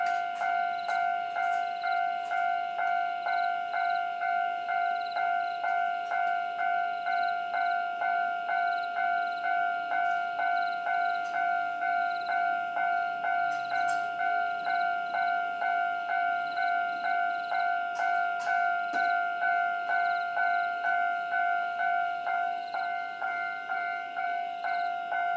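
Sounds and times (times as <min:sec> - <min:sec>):
level crossing bell at Xingnong Road in Jiaoxi, Yilan: 0:00.0 - 0:25.3.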